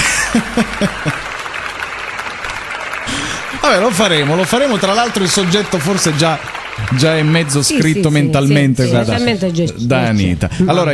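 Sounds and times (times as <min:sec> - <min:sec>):
people chuckling: 0:00.0 - 0:01.3
spontaneous audience applause at a film presentation: 0:00.0 - 0:09.0
speech: 0:00.3 - 0:01.3, 0:03.7 - 0:10.9.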